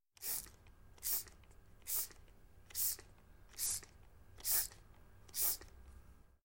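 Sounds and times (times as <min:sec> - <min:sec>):
spray bottle spritzing flowers: 0:00.2 - 0:05.7.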